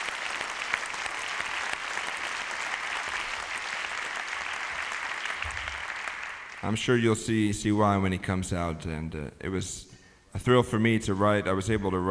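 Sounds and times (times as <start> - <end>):
audience applause: 0.0 - 6.7
speech: 6.6 - 12.0.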